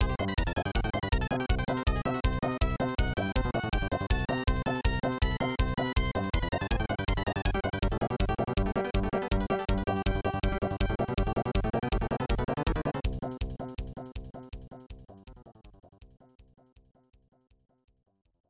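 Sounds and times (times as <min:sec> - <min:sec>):
level game music: 0:00.0 - 0:13.7.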